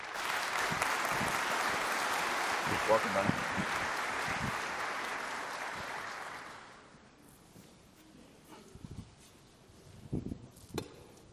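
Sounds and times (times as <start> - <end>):
audience applause at a church service welcoming a preacher and translator: 0.0 - 6.9
speech: 2.9 - 3.8.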